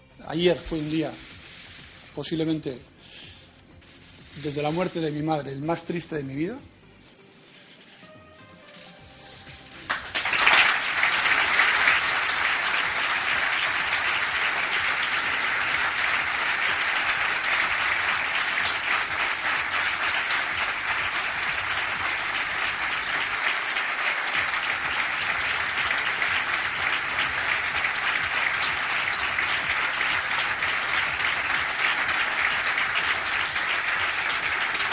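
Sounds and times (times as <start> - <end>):
speech: 0.2 - 1.3, 2.2 - 2.9, 4.4 - 6.8
long round of applause: 9.9 - 34.9.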